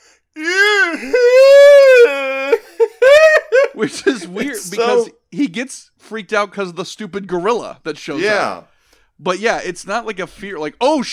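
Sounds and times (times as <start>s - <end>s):
person imitating a cartoon character's scream: 0.4s - 3.4s
laughter: 2.6s - 5.1s
speech: 3.8s - 11.1s.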